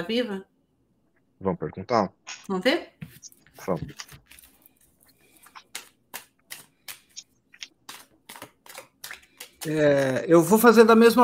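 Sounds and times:
speech: 0.0 - 0.5, 1.4 - 4.4, 9.6 - 11.2
deck of cards shuffled for a card reading: 3.0 - 10.6.

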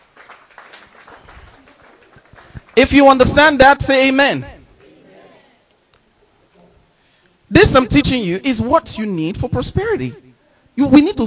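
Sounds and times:
audience clapping: 0.0 - 3.5
speech: 2.8 - 4.5, 7.7 - 10.2, 10.8 - 11.2.

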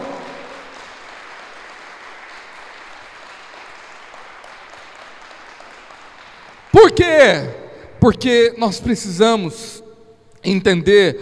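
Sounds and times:
audience applauding loudly: 0.0 - 7.6
speech: 7.0 - 9.8, 10.4 - 11.2.

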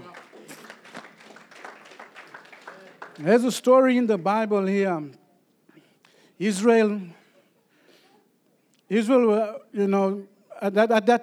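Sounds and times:
crowd clapping: 0.0 - 4.3
speech: 3.2 - 5.2, 6.4 - 7.2, 8.9 - 11.2.

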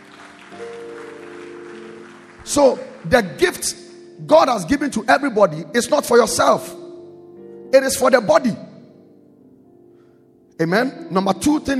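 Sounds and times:
audience clapping hands: 0.0 - 4.2
speech: 0.5 - 0.9, 2.4 - 6.8, 7.7 - 8.7, 10.6 - 11.7.

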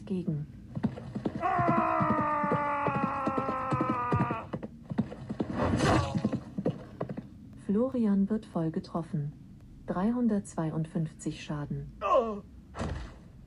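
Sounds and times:
speech: 0.1 - 0.6, 7.8 - 12.5
horse galloping in the video game Rittermanager: 0.6 - 7.4.

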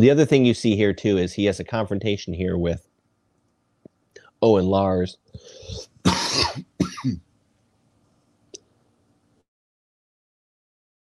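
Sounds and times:
speech: 0.0 - 2.9, 4.4 - 7.3
person hacking to clear their chest: 5.5 - 7.2.

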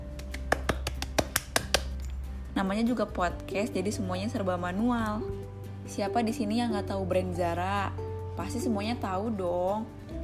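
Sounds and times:
sharp hand claps: 0.0 - 2.1
speech: 2.6 - 10.0.

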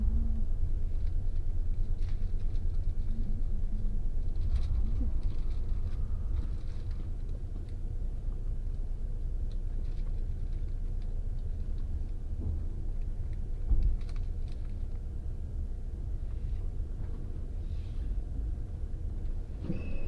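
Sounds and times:
train rumble and rattle on a train journey: 0.0 - 20.0
brief squeals: 19.6 - 20.0.

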